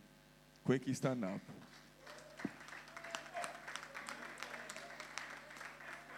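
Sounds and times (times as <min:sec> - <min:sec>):
speech: 0:00.6 - 0:01.9
audience applause: 0:02.0 - 0:06.1.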